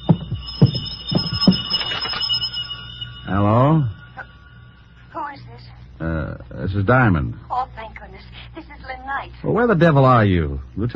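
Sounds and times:
telephone ringing: 0:00.0 - 0:05.2
speech: 0:03.3 - 0:03.9, 0:06.7 - 0:10.9.

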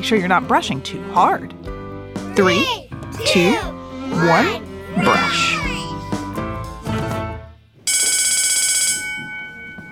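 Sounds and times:
speech: 0:00.0 - 0:01.7, 0:02.4 - 0:05.7
bell ringing: 0:07.9 - 0:09.9.

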